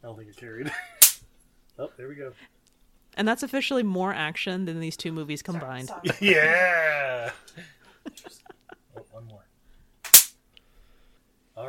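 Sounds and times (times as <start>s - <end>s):
speech: 0.0s - 1.0s, 1.8s - 2.6s, 3.2s - 8.4s
laughter: 0.6s - 1.0s, 5.9s - 9.2s
electric fly swatter zapping an insect: 1.0s - 1.2s, 10.1s - 10.4s.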